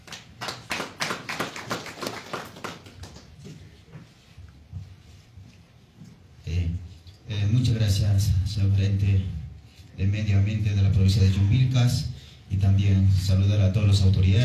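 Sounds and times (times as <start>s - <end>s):
applause: 0.0s - 3.4s
speech: 6.7s - 9.4s, 10.0s - 14.4s.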